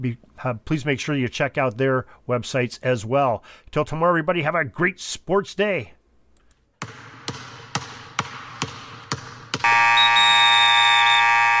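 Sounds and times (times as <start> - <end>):
speech: 0.0 - 6.0
basketball dribbling: 6.8 - 9.7
shot clock buzzer: 9.6 - 11.5.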